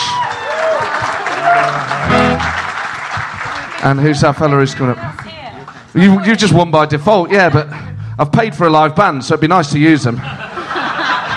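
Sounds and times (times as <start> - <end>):
audience applause: 0.0 - 5.8
speech: 3.8 - 5.2, 6.0 - 10.4
laughter: 10.1 - 11.3.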